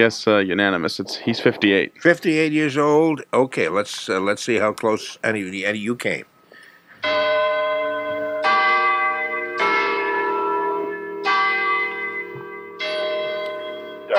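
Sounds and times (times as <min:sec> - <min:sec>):
speech: 0:00.0 - 0:06.3
town clock bell at Coolidge Corner, Brookline chiming: 0:07.0 - 0:14.1.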